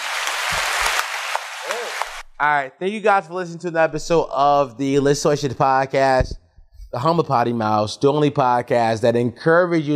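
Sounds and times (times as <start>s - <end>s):
audience applause: 0.0s - 2.2s
speech: 2.4s - 9.9s
low thumps: 5.0s - 7.0s.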